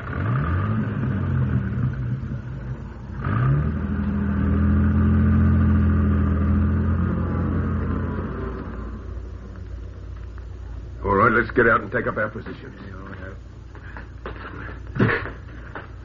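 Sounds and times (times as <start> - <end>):
car engine driving across road: 0.0 - 10.2
speech: 11.4 - 13.6.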